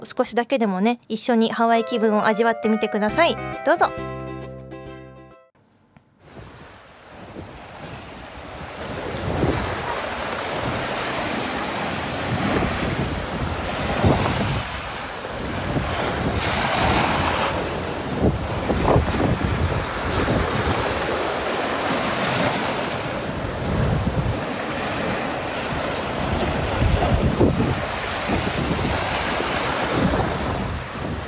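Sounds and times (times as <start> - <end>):
speech: 0.0 - 4.4
ocean waves in Hawaii: 6.2 - 31.2
heavy wind buffeting the microphone: 6.3 - 31.2.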